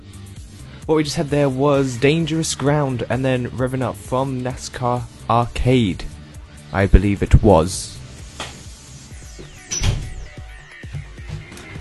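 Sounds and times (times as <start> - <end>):
speech: 0.9 - 6.1, 6.7 - 8.0
door creaking open then closing: 9.3 - 10.4.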